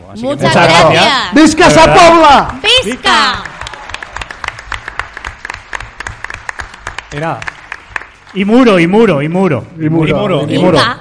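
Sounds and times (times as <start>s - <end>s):
speech: 0.1s - 3.5s, 7.1s - 7.5s, 8.4s - 10.9s
audience applause: 1.6s - 8.6s.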